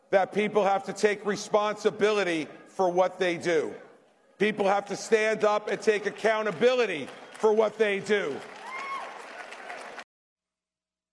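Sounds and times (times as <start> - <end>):
speech: 0.1 - 8.6
applause in recorded speech clip: 5.1 - 10.1.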